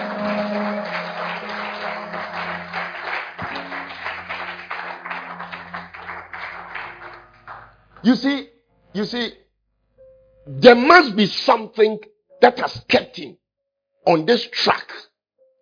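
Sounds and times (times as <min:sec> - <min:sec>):
audience clapping: 0:00.0 - 0:08.1
speech: 0:08.0 - 0:09.4, 0:10.4 - 0:13.4, 0:14.0 - 0:15.1.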